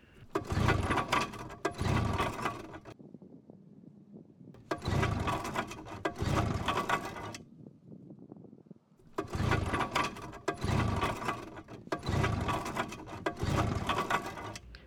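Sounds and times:
boat motor cranking: 0:00.1 - 0:03.0, 0:04.6 - 0:07.4, 0:09.1 - 0:14.8.

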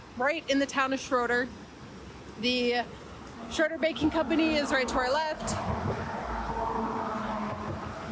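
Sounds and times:
speech: 0:00.2 - 0:01.6, 0:02.4 - 0:06.0
cars passing on a highway: 0:02.8 - 0:08.1.

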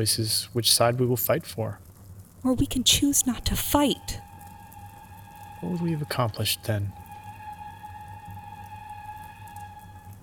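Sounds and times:
speech: 0:00.0 - 0:01.8, 0:02.4 - 0:04.2, 0:05.6 - 0:07.0
high tonal whine of train: 0:02.6 - 0:10.2
train rolling by with low rumble: 0:02.6 - 0:10.2.

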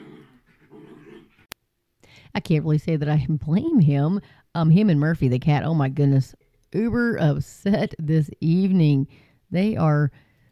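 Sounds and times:
upset dog growling: 0:00.0 - 0:01.5
speech: 0:02.4 - 0:10.3.

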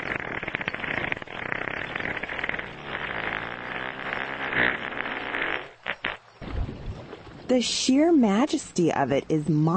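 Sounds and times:
humpback whale fart: 0:00.0 - 0:06.6
speech: 0:07.5 - 0:09.7.

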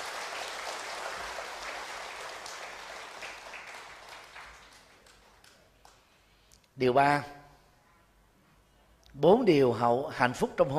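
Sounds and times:
audience applause: 0:00.0 - 0:05.7
speech: 0:06.8 - 0:07.4, 0:09.2 - 0:10.7.

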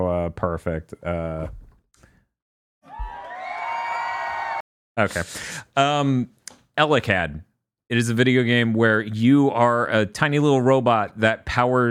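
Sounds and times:
speech: 0:00.3 - 0:01.6, 0:05.0 - 0:11.9
applause and cheering sound effect: 0:02.8 - 0:04.6.

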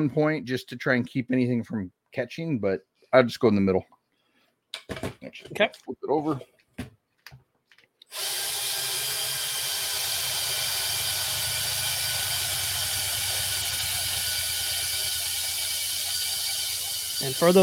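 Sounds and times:
speech: 0:00.0 - 0:04.0, 0:04.8 - 0:06.5, 0:17.2 - 0:17.6
power drill drilling: 0:08.1 - 0:17.6.

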